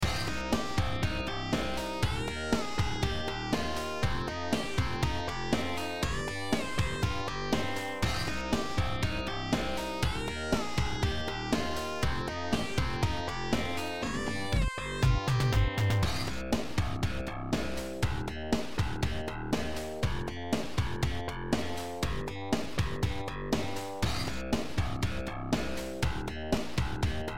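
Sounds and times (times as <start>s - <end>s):
bass lead sound over a beat: 0.0s - 27.3s.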